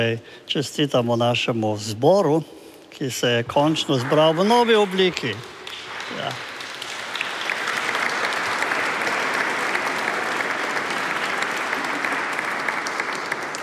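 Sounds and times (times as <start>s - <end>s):
speech: 0.0s - 6.5s
audience applause: 3.6s - 13.6s.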